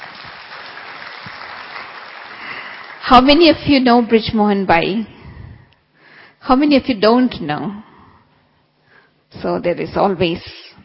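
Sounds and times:
audience clapping hands in welcome: 0.0s - 3.3s
speech: 3.1s - 5.1s, 6.4s - 7.9s, 9.3s - 10.8s.

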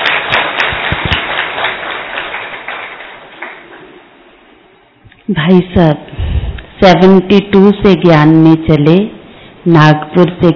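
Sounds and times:
audience applause: 0.0s - 4.0s
speech: 5.3s - 6.2s, 6.8s - 10.5s.

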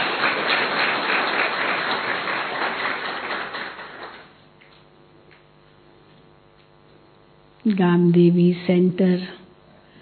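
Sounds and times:
audience clapping: 0.0s - 4.8s
speech: 7.7s - 9.4s.

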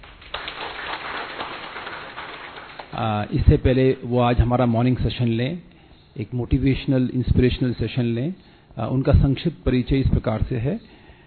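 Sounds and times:
audience applause: 0.0s - 3.0s
speech: 3.0s - 11.0s.

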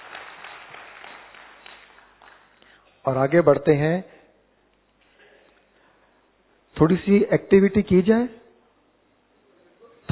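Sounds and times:
audience applause: 0.0s - 2.6s
speech: 3.0s - 4.2s, 6.8s - 8.4s.

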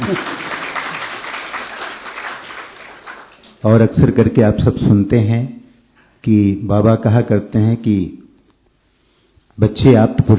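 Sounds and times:
speech: 0.0s - 0.4s, 3.6s - 5.6s, 6.2s - 8.2s, 9.6s - 10.3s
audience clapping: 0.0s - 3.6s.

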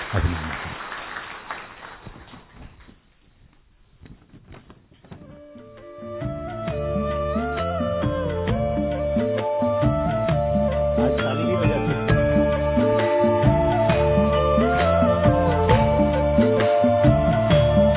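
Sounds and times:
audience applause: 0.0s - 2.6s
melodic music with sustained tones: 5.4s - 17.9s.

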